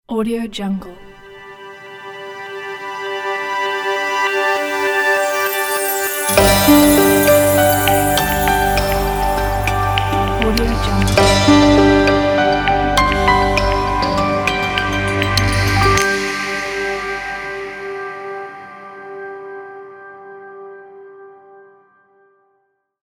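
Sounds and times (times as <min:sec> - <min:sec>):
jingle: 0:02.1 - 0:18.6.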